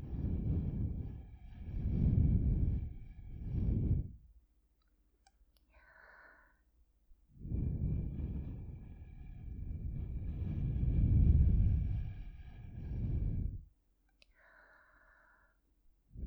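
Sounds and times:
blowing into ears through a straw: 0.0s - 4.2s, 7.4s - 13.7s.

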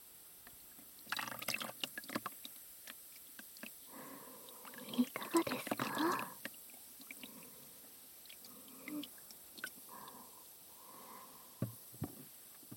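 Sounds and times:
fizzing warm water during massage: 0.9s - 11.9s.

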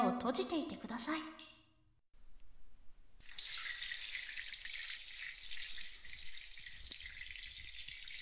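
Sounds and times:
speech: 0.2s - 1.4s
shower water washing hair: 3.2s - 8.2s.

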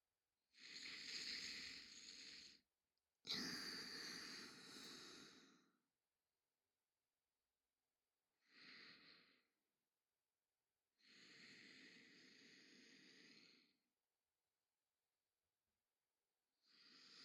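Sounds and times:
sleeping breath: 0.6s - 2.6s, 3.3s - 5.8s, 11.0s - 13.8s, 16.7s - 17.2s.

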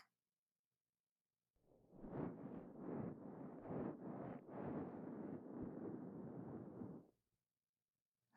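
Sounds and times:
head and shoulder massage ASMR: 2.0s - 7.1s.

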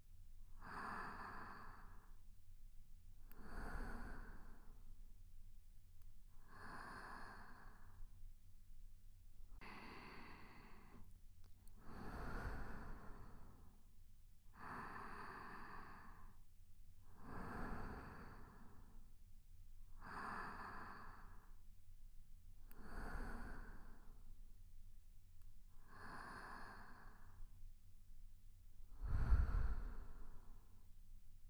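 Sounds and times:
sleep breathing: 0.6s - 2.1s, 3.3s - 4.8s, 6.5s - 8.0s, 9.6s - 11.1s, 11.8s - 13.8s, 14.6s - 16.4s, 17.2s - 19.0s, 20.0s - 21.6s, 22.8s - 24.2s, 25.8s - 27.4s, 28.9s - 30.8s.

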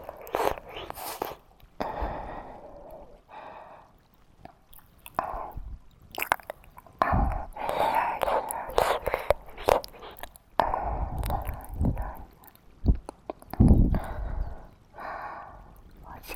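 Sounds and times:
relaxed morning ear licking: 0.0s - 2.0s, 4.4s - 14.3s.

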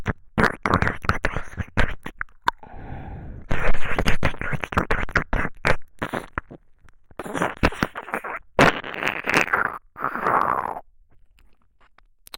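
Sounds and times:
ear licking: 0.0s - 2.6s, 3.5s - 6.6s, 7.2s - 10.8s.

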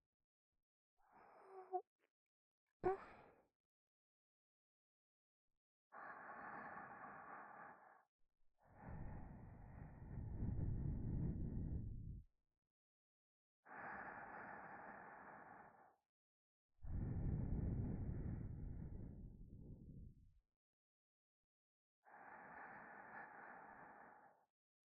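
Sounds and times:
sleeping breath in the left ear: 2.8s - 3.4s, 6.0s - 12.2s, 13.7s - 16.0s, 16.9s - 20.2s, 22.1s - 24.5s.

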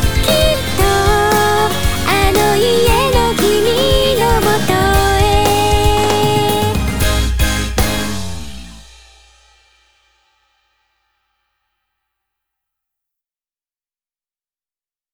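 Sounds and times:
character song: 0.0s - 8.8s.

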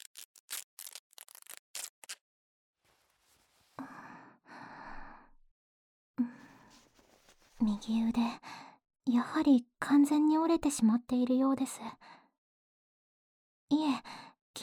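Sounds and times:
scissors cutting through clothing to reach an injured person's broken arm: 0.0s - 2.2s
speech: 7.6s - 12.1s.

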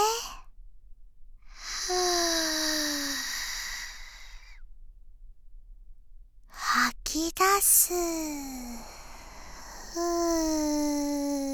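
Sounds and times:
deep inhale during a guided breathing exercise: 1.5s - 4.6s, 8.8s - 10.6s
speech: 7.2s - 8.9s, 10.0s - 11.0s.

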